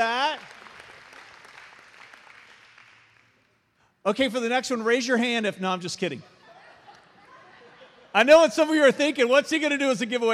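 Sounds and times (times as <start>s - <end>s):
audience clapping: 0.0s - 3.6s
speech: 4.1s - 6.3s, 8.2s - 10.3s
laughter: 6.2s - 8.5s.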